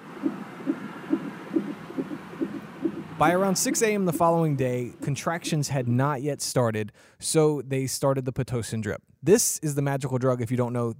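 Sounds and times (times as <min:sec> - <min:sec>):
soft hum: 0:00.0 - 0:07.1
speech: 0:00.2 - 0:00.5, 0:03.2 - 0:10.9
baby's heartbeat: 0:00.2 - 0:05.6.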